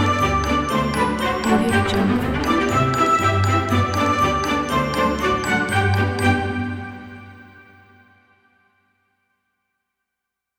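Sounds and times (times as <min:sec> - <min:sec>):
fairytale circus music: 0:00.0 - 0:07.6.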